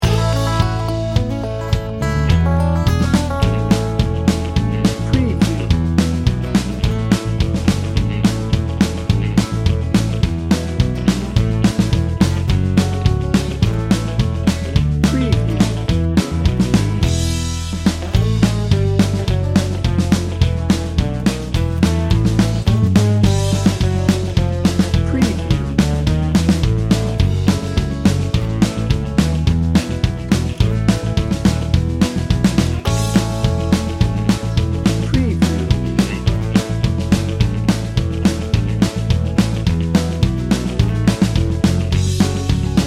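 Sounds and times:
country hoedown music bed: 0.0 - 42.8.

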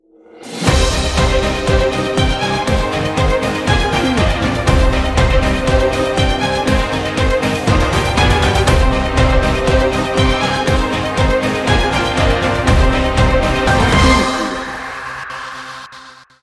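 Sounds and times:
warrior march: 0.7 - 15.2.

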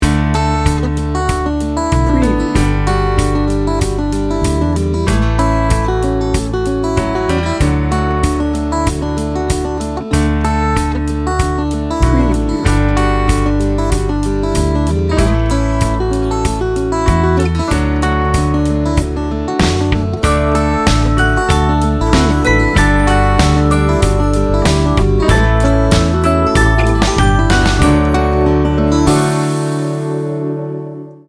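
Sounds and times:
americana acoustic folk music: 0.0 - 31.2.

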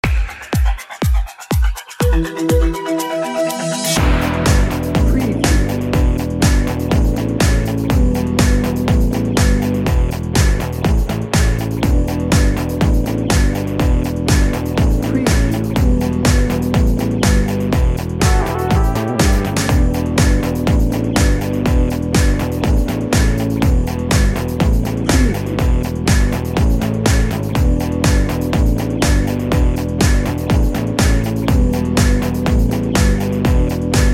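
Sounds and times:
radiant energy music bed: 0.0 - 34.1.

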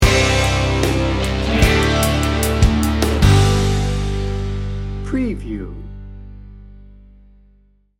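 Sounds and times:
motivational pop rock sting bumper: 0.0 - 5.5.

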